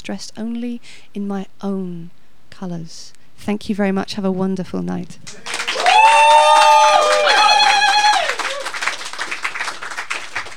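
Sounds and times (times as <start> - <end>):
speech: 0.1 - 7.4
audience applause: 5.3 - 10.5.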